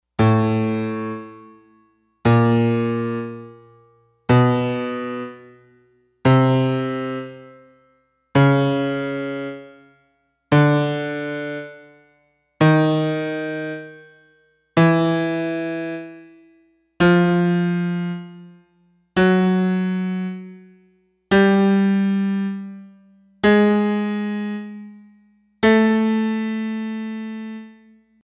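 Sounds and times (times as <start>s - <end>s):
piano: 0.1s - 28.2s.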